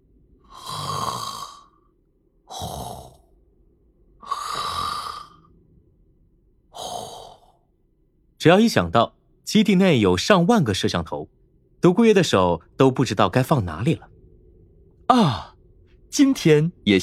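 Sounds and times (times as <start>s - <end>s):
snoring: 0.5s - 1.9s, 2.5s - 3.4s, 4.2s - 5.5s, 6.7s - 7.6s
speech: 8.4s - 14.1s, 15.1s - 15.5s, 16.1s - 17.0s.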